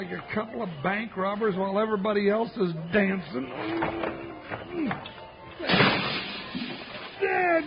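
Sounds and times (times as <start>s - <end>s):
speech: 0.0s - 5.8s
window on the side of a house breaking and scattering: 5.6s - 7.6s.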